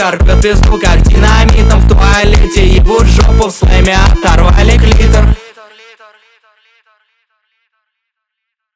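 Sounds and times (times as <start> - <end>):
bass-boosted music: 0.0 - 5.4.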